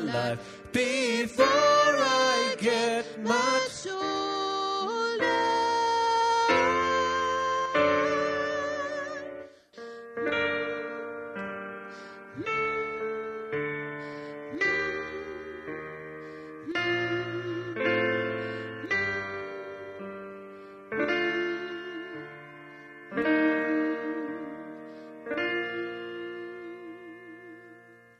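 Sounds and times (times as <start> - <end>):
soprano voice: 0.0 - 28.1.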